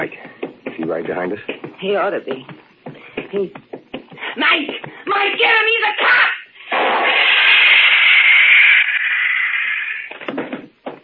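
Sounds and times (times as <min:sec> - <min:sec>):
speech: 0:00.9 - 0:02.6, 0:03.3 - 0:03.7, 0:04.4 - 0:06.3
radio-drama stun gun blast sound effect: 0:05.9 - 0:10.3.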